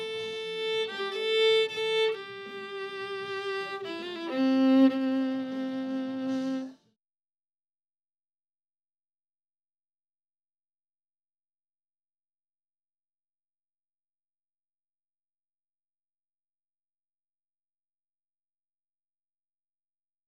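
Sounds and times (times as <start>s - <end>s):
violin: 0.0s - 7.0s.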